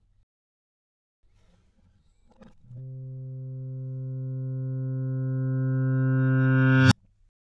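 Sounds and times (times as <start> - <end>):
reversed steel-string guitar C3 note: 2.7 - 7.0.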